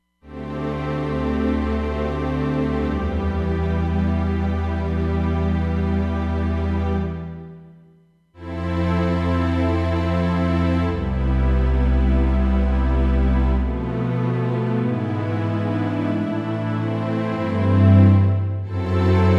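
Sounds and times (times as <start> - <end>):
strings: 0.2 - 7.6, 8.4 - 19.3.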